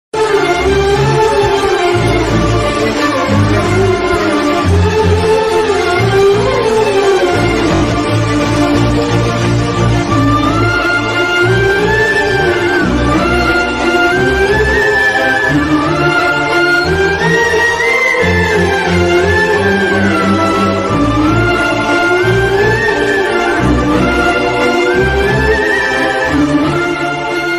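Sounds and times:
love violin background music ringtone: 0.2s - 27.5s.

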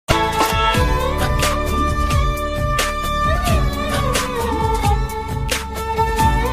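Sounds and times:
love ringtone background music: 0.1s - 6.4s.

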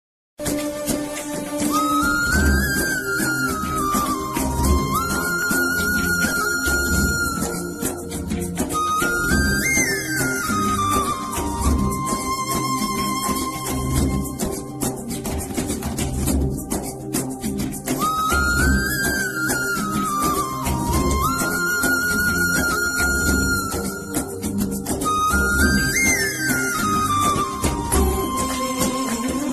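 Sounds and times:
Tamil flute background music ringtone: 0.6s - 29.5s.

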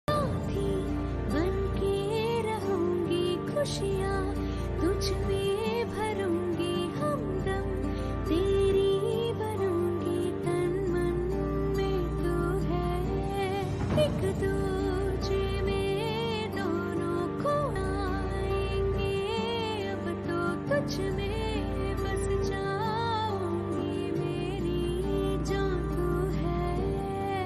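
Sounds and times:
romantic Tamil and Hindi movie love song ringtone: 0.0s - 27.4s.

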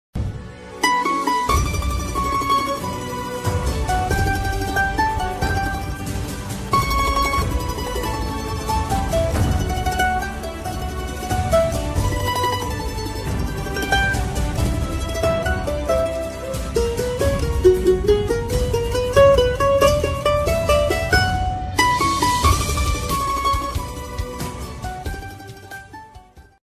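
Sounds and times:
background music: 0.2s - 26.6s.

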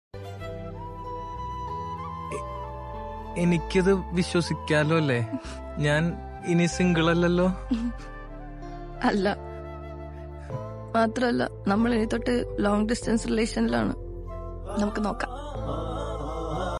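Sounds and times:
Malayalam sad love emotional background music: 0.2s - 16.7s.

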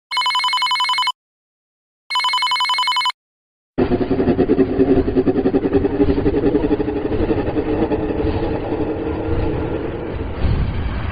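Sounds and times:
horror ringtone remix: 0.1s - 1.2s, 2.1s - 3.2s
devil voice: 3.8s - 11.0s.

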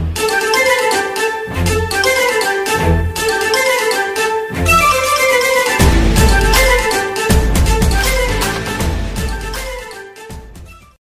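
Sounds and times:
8D audio instrumental background music ringtone: 0.1s - 10.9s.

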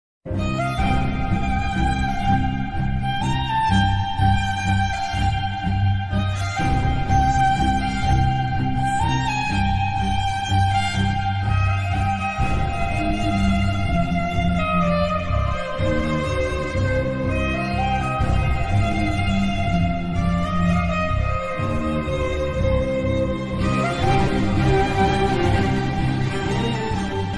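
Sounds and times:
sad background music ringtone: 0.3s - 27.3s.

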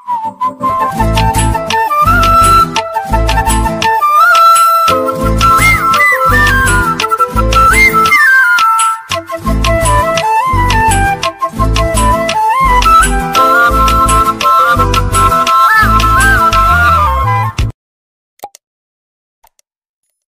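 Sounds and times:
background music ringtone: 0.3s - 17.7s.

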